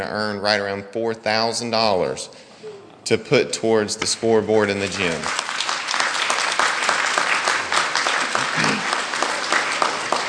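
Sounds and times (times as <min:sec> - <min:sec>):
speech: 0:00.0 - 0:05.5
crowd applause: 0:04.8 - 0:10.2.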